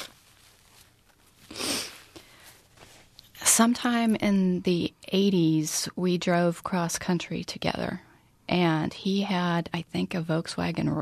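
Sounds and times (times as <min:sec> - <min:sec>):
person blowing nose: 0:01.4 - 0:02.3
speech: 0:03.6 - 0:10.9.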